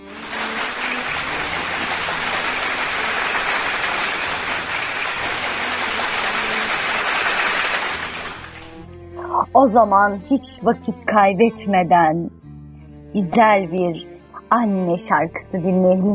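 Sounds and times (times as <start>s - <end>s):
applause: 0.0s - 8.8s
speech: 9.5s - 12.4s, 13.1s - 16.1s.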